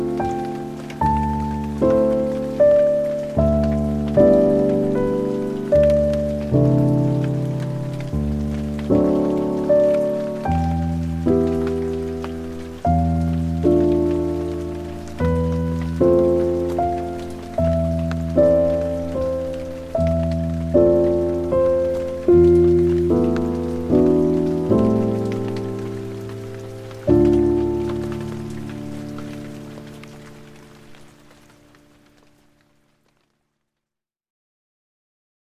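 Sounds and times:
piano in nature: 0.0s - 33.4s
rain in nature: 0.0s - 33.9s.

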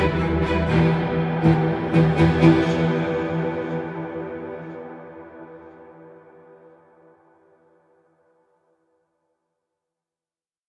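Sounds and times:
ambient music: 0.0s - 8.4s.

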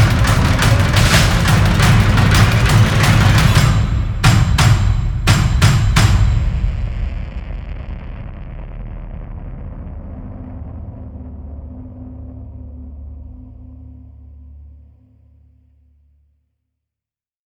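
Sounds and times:
drums: 0.0s - 11.0s.

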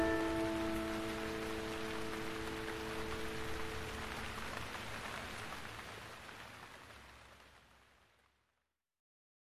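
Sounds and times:
calming piano music: 0.0s - 4.9s
rain: 0.0s - 8.6s.

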